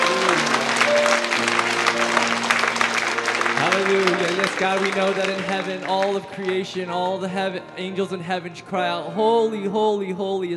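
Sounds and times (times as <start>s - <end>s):
audience clapping: 0.0s - 7.6s
speech: 4.6s - 10.5s.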